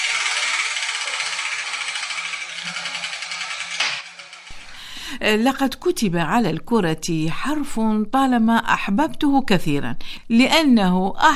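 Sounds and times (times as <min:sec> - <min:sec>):
letter wheel spinning: 0:00.0 - 0:04.7
speech: 0:05.1 - 0:11.3.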